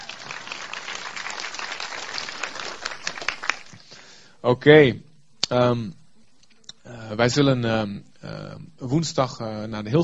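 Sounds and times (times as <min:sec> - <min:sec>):
audience applause: 0:00.0 - 0:03.9
speech: 0:04.4 - 0:06.0, 0:07.1 - 0:10.0.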